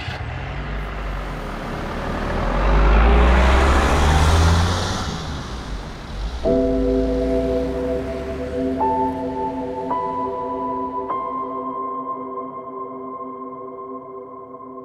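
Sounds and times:
car driving off: 0.0s - 11.6s.

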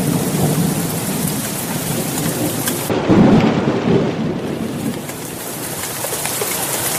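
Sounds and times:
heavy rain downpour in a thunderstorm: 0.0s - 6.9s
thunder rumbling: 0.0s - 6.9s.

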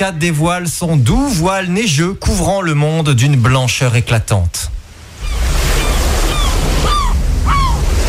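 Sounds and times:
speech: 0.0s - 4.8s
seagull cry: 5.2s - 8.0s.

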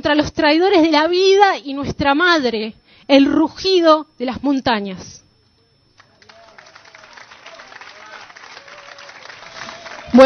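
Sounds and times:
speech: 0.0s - 5.2s
audience applause: 6.0s - 10.2s.

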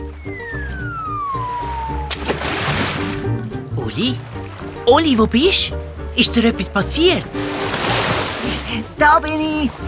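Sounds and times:
falling whistle: 0.0s - 2.4s
steady music: 0.0s - 9.8s
water splashing and sloshing: 0.0s - 9.8s
speech: 3.9s - 7.7s, 9.0s - 9.8s.

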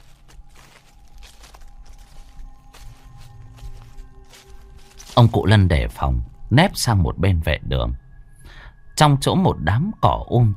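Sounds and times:
footsteps crunching on dry leaves: 0.0s - 6.3s
speech: 5.2s - 8.0s, 9.0s - 10.5s.

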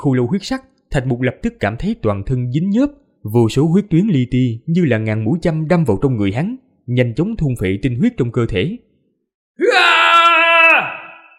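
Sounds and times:
speech: 0.0s - 8.9s, 9.6s - 10.0s
long scream from the sky: 9.6s - 11.3s.

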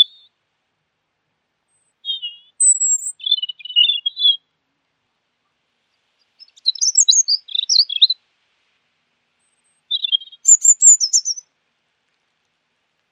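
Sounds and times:
bird song with twittering and chirps: 1.7s - 4.4s, 6.2s - 8.2s, 9.4s - 11.4s.

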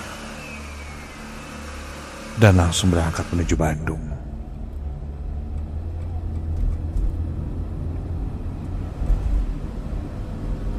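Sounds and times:
car engine starting and revving: 0.0s - 10.7s
speech: 2.4s - 4.1s.

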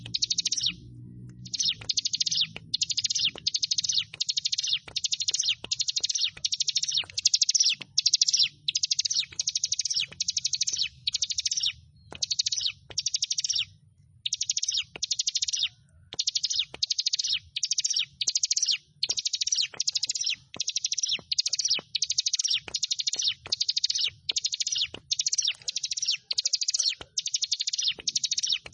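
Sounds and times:
faint low hum: 0.0s - 12.8s
sharp clicks: 0.0s - 13.7s, 14.3s - 28.7s
bar-winged prinia singing high trills: 0.0s - 28.7s.

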